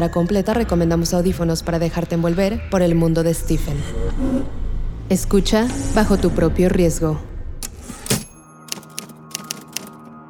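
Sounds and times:
speech: 0.0 - 7.3
typing on a typewriter keyboard: 8.1 - 10.2.

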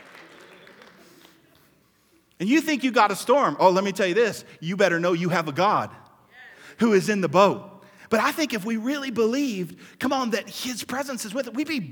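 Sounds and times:
audience clapping: 0.0 - 1.8
speech: 2.4 - 6.0, 6.8 - 11.9.

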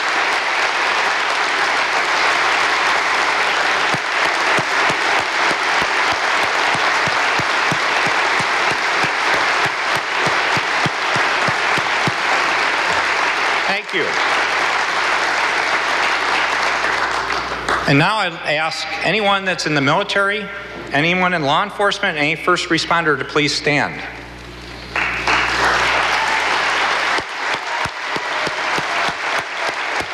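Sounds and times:
audience round of applause: 0.0 - 18.6, 24.8 - 30.1
speech: 17.9 - 24.2.

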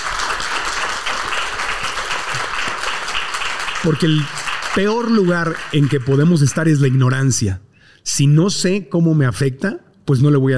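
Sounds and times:
audience applause: 0.0 - 7.4
speech: 3.8 - 10.5.

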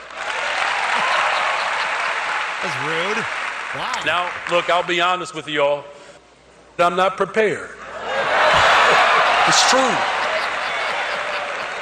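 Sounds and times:
audience applause: 0.0 - 4.9, 8.4 - 11.8
laughter: 0.9 - 2.9, 8.0 - 11.8
speech: 2.6 - 6.0, 6.8 - 7.8, 8.9 - 10.2.

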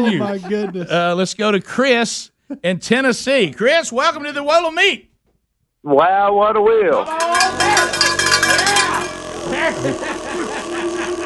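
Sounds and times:
laughter: 0.0 - 1.1, 9.0 - 11.2
speech: 0.0 - 5.1, 5.8 - 7.6
mini cowbells ringing: 7.1 - 10.3.

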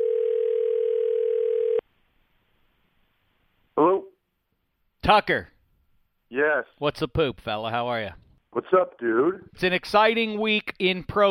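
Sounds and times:
telephone dial tone: 0.0 - 1.8
speech: 5.1 - 5.5, 6.3 - 11.2.

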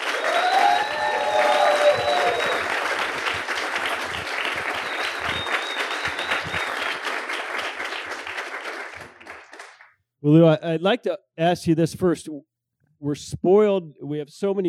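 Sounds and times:
audience applause: 0.0 - 9.9
speech: 10.2 - 14.6.

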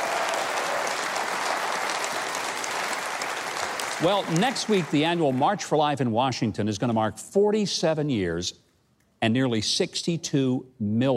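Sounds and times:
audience applause for a live band: 0.0 - 5.6
speech: 4.0 - 8.6, 9.2 - 11.1.

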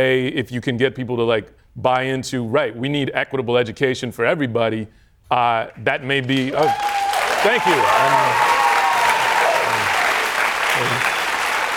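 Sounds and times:
speech: 0.0 - 8.5
audience applause: 6.1 - 11.7.

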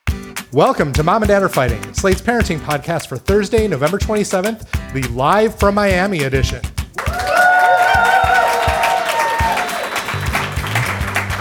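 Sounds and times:
speech: 0.5 - 6.8
live audience applause and cheering: 6.9 - 11.3
voices shouting: 7.0 - 10.1
whoops: 7.0 - 10.2.

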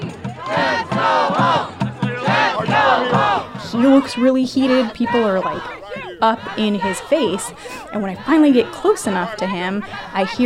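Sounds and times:
crowd chanting: 0.0 - 10.4
people screaming: 0.4 - 10.4
speech: 3.8 - 10.4.

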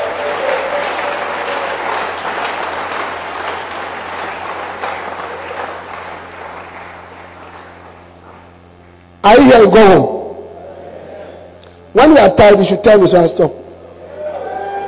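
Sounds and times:
church congregation clapping hands: 0.0 - 8.8
speech: 9.3 - 10.2, 12.0 - 13.6.

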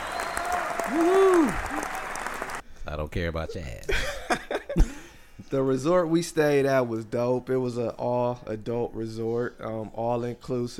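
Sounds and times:
round of applause: 0.0 - 2.6
speech: 0.9 - 1.6, 3.0 - 10.7.

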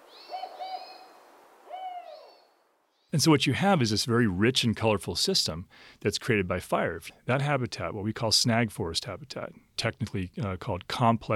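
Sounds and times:
spotted owl hooting: 0.0 - 2.5
speech: 3.1 - 11.3.

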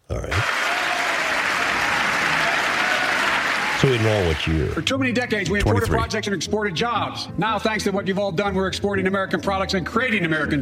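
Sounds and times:
large audience applause during President Biden's State of the Union address: 0.3 - 4.8
speech: 3.8 - 10.5.

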